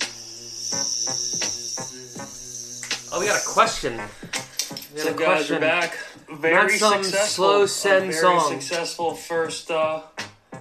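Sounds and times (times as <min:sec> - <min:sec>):
drone flying overhead with high electric whine: 0:00.0 - 0:04.8
speech: 0:03.2 - 0:04.2, 0:04.9 - 0:10.1.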